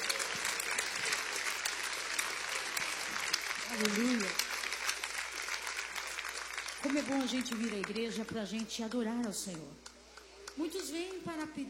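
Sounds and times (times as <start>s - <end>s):
audience applauding: 0.0s - 8.6s
speech: 3.8s - 4.4s, 6.9s - 9.9s, 10.6s - 11.6s.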